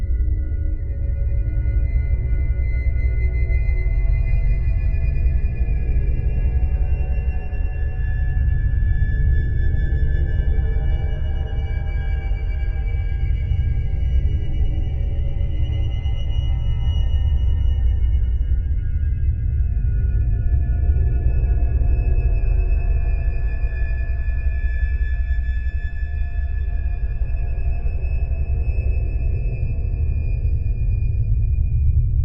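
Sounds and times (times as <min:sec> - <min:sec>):
ambience: 0:00.0 - 0:32.2.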